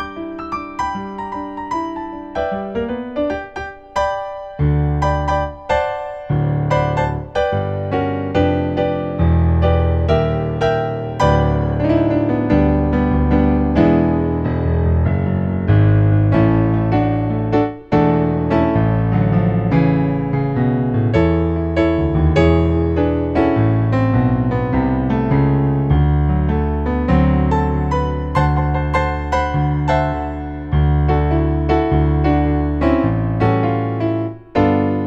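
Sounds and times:
intermediate solo piano piece: 0.0s - 35.0s.

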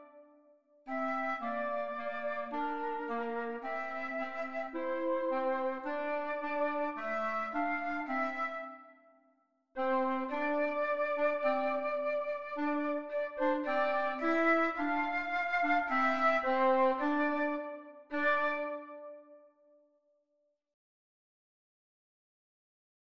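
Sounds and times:
clarinet in a duet: 0.0s - 0.3s, 0.9s - 9.1s, 9.8s - 19.6s
flute in a duet: 0.0s - 9.2s, 9.8s - 19.7s.

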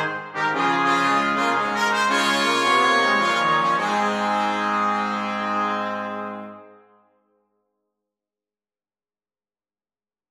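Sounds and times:
brass quartet playing a jazz carol: 0.0s - 6.8s.

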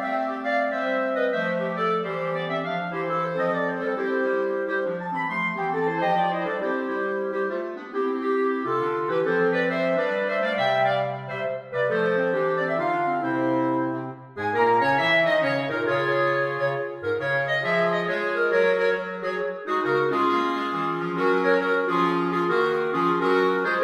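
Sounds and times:
jazz carol for clarinet quartet: 0.0s - 23.8s.

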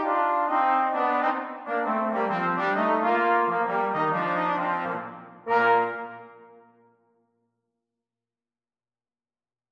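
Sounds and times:
jazz trombone duet: 0.0s - 6.6s.

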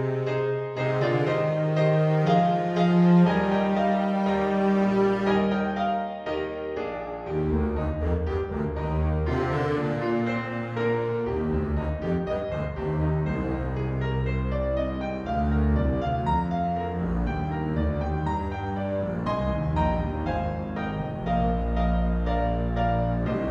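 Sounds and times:
double bass: 0.0s - 5.8s, 7.2s - 23.4s.

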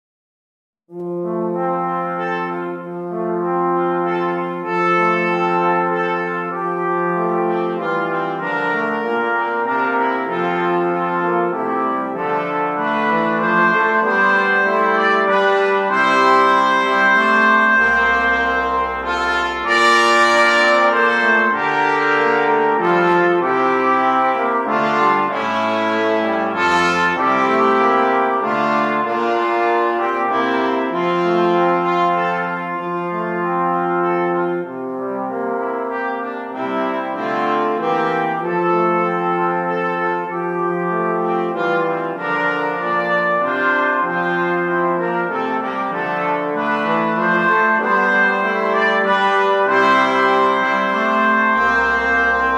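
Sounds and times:
brass instruments: 0.9s - 52.5s.

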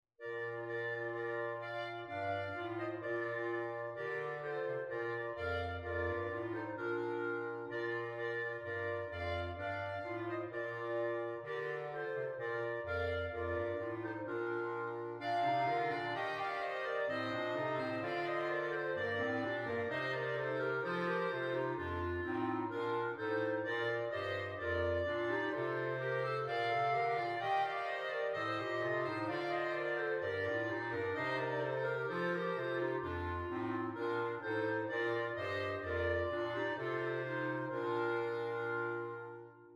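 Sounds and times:
clarinet: 0.2s - 39.7s.

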